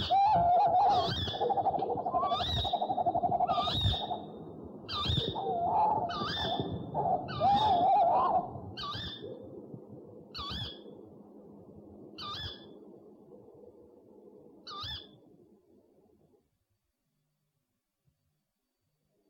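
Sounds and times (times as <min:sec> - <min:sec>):
owl calls: 0:00.0 - 0:04.3, 0:04.9 - 0:09.3, 0:14.7 - 0:15.1.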